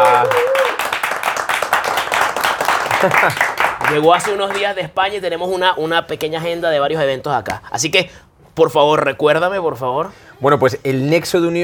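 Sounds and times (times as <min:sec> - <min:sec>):
crowd applause: 0:00.0 - 0:04.6
laughter: 0:02.9 - 0:03.6
speech: 0:03.0 - 0:11.6.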